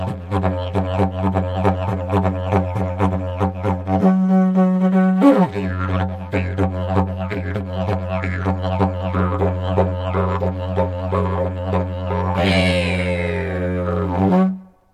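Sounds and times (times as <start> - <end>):
yidaki drone: 0.0 - 4.1, 5.3 - 14.6.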